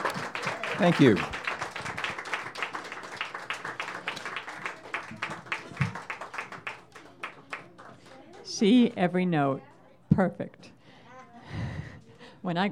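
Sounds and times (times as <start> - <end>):
audience applause: 0.0 - 8.5
speech: 0.8 - 1.4, 8.6 - 10.7, 12.4 - 12.7.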